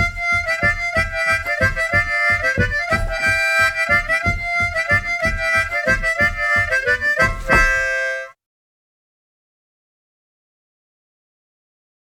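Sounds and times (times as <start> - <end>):
mazurka: 0.0 - 8.4.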